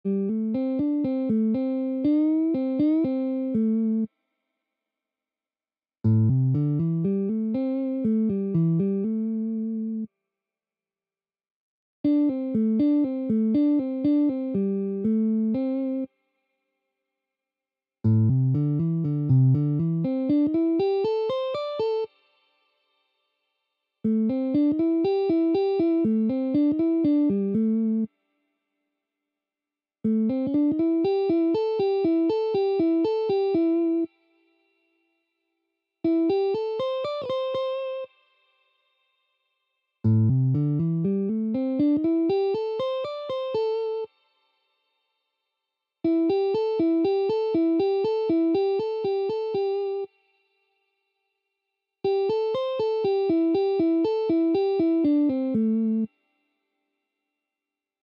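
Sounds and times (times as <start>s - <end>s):
easy blues licks: 0.1s - 4.1s, 6.2s - 10.1s, 12.1s - 16.1s, 18.1s - 22.1s, 24.1s - 28.1s, 30.1s - 34.1s, 36.1s - 38.1s, 40.1s - 44.1s, 46.1s - 50.1s, 52.1s - 56.1s.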